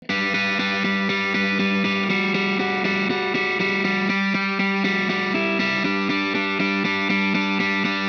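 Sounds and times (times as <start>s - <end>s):
distorted guitar through a wet amp: 0.0s - 8.0s.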